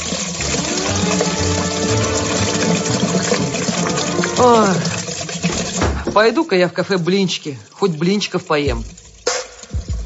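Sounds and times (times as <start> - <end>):
water running from a washbasin tap onto the floor: 0.0 - 10.0
rising tonal squeal: 0.4 - 4.6
speech: 4.4 - 4.9, 6.2 - 9.0.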